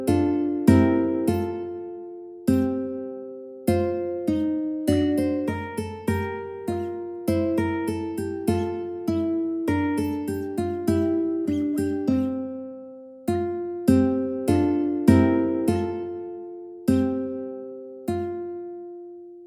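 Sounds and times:
ukulele: 0.0s - 19.4s.

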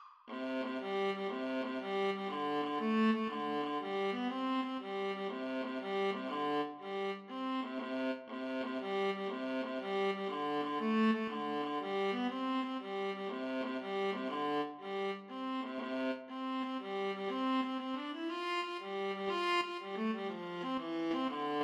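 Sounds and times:
viola duet playing an Irish jig medley: 0.3s - 21.6s.

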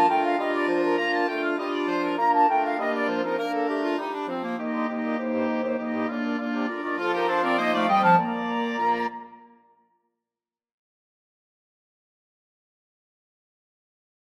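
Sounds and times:
flexible mixed ensemble of players playing a Christmas tune: 0.0s - 9.3s.

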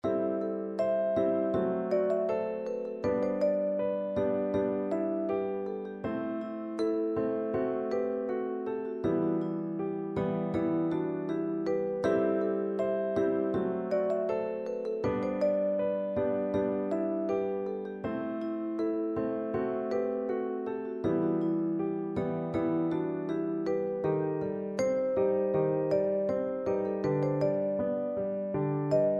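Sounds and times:
vibraphone: 0.0s - 29.1s.

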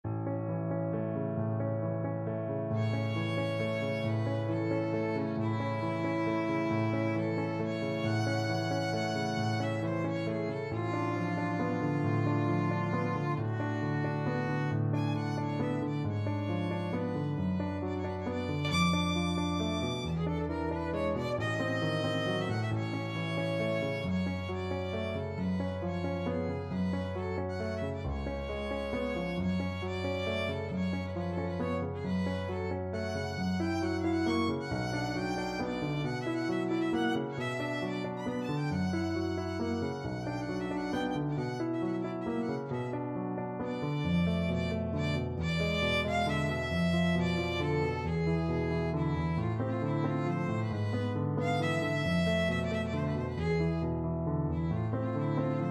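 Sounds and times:
violin nocturne in D flat: 0.2s - 55.6s.

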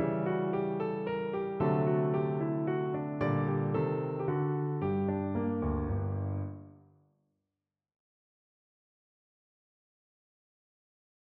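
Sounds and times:
piano minuet: 0.0s - 6.8s.

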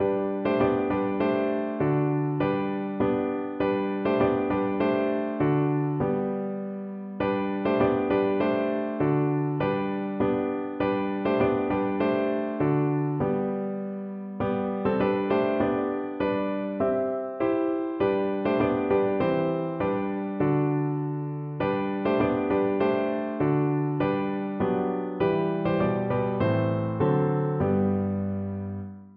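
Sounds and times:
piano: 0.0s - 29.1s.

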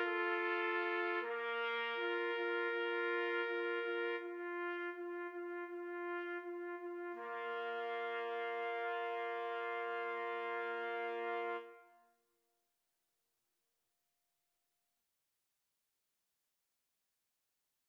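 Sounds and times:
trumpet duet playing a pavane: 0.0s - 12.0s.

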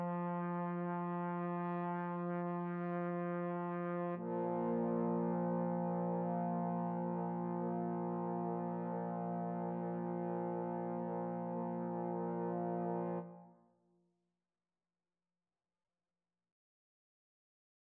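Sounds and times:
trombone trio: 0.0s - 13.3s.

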